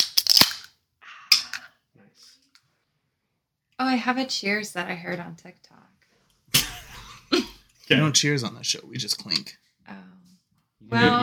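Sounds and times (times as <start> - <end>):
drink cans cracking open: 0.0 - 1.7
speech: 3.8 - 5.9, 7.9 - 11.2.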